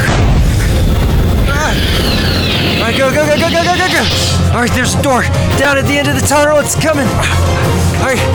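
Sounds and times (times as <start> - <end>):
grenade explosion: 0.1 - 4.3
speech: 3.3 - 8.3.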